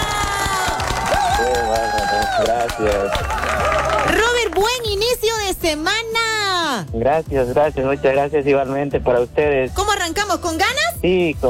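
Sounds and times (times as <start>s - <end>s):
high whoops from the studio audience: 0.0s - 4.1s
studio audience cheering and applauding a guest on a live show: 0.0s - 5.4s
speech: 2.3s - 11.4s.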